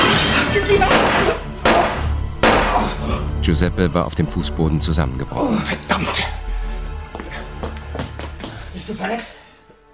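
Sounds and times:
window glass shattering from a thrown lamp: 0.0 - 2.8
speech: 0.6 - 1.4, 3.5 - 6.4, 8.9 - 9.5.

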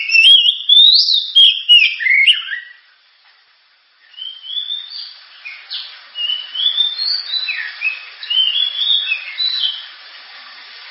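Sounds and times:
Oriental magpie-robin singing: 0.0 - 2.8, 4.1 - 9.9
background hiss: 0.0 - 10.8.

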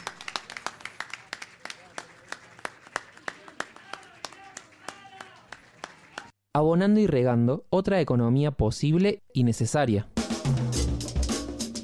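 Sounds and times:
audience clapping: 0.0 - 6.4
speech: 6.6 - 10.7.

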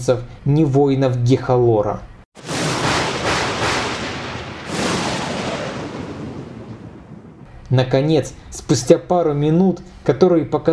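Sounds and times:
speech: 0.0 - 2.1, 7.7 - 10.7
thunder and lightning strikes: 2.4 - 7.5.

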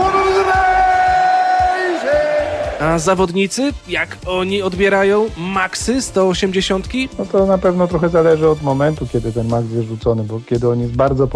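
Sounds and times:
crowd roaring: 0.0 - 3.0
speech: 2.8 - 11.3.

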